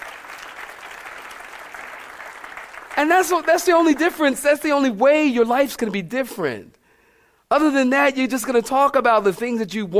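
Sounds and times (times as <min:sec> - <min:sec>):
audience clapping: 0:00.0 - 0:04.7
speech: 0:03.0 - 0:06.8, 0:07.5 - 0:09.9.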